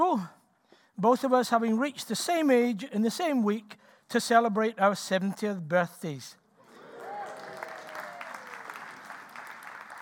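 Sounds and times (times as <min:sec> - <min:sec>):
speech: 0:00.0 - 0:00.4, 0:01.0 - 0:06.4
audience clapping: 0:06.7 - 0:09.9.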